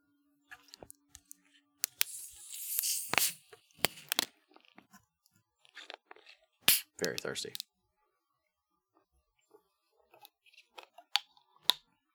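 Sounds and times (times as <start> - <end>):
drink cans being cracked open with clicks, pops and fizz: 1.8 - 4.3, 6.7 - 7.6
speech: 7.0 - 7.6.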